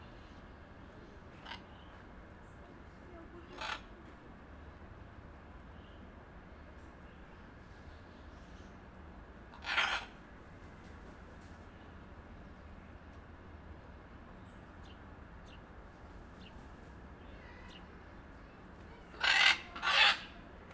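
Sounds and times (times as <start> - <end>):
blue-and-yellow macaw giving harsh raspy squawks at the Jardin des Plantes, Paris: 9.6 - 10.1, 19.2 - 20.4.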